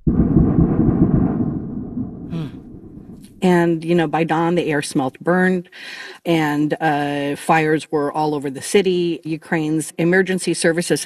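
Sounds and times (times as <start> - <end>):
loud explosions from strikes on a city: 0.0 - 3.7
speech: 3.4 - 11.0.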